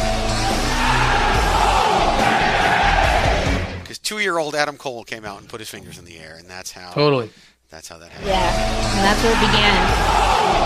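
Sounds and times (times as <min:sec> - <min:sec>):
crowd of thousands shouting in unison: 0:00.1 - 0:03.7, 0:08.3 - 0:10.6
speech: 0:04.2 - 0:10.6.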